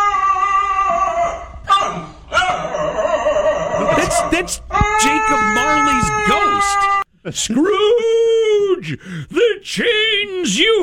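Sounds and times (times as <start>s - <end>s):
dog howling: 0.0s - 7.0s
speech: 4.4s - 8.1s, 8.8s - 10.8s.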